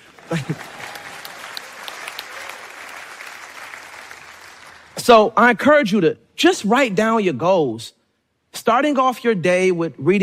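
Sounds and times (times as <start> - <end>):
audience applause: 0.0 - 5.0
speech: 0.3 - 0.8, 5.0 - 8.0, 8.6 - 10.2.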